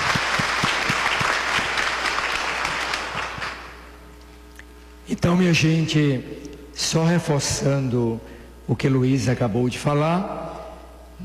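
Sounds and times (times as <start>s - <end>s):
audience applause: 0.0s - 3.8s
speech: 5.1s - 10.5s.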